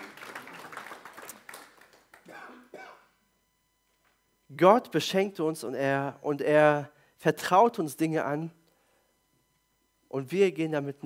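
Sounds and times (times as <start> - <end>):
room full of people applauding: 0.0 - 2.4
speech: 4.6 - 8.6, 10.1 - 11.0.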